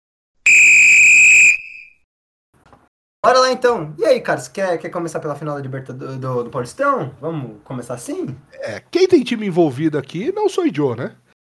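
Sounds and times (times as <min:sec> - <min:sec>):
referee's whistle sound effect: 0:00.5 - 0:02.0
speech: 0:03.2 - 0:11.2.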